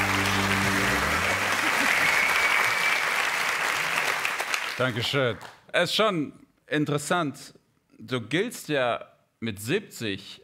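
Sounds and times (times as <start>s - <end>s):
audience applause: 0.0s - 5.5s
speech: 4.8s - 10.4s.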